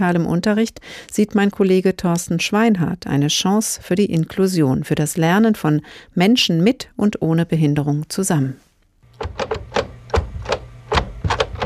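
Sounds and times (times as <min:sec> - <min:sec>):
speech: 0:00.0 - 0:09.6
braille typewriter typing: 0:09.1 - 0:11.6.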